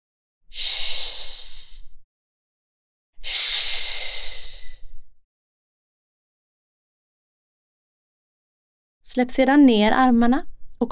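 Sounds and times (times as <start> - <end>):
whooshing breath: 0.5 - 2.0, 3.2 - 5.1
speech: 9.1 - 10.9.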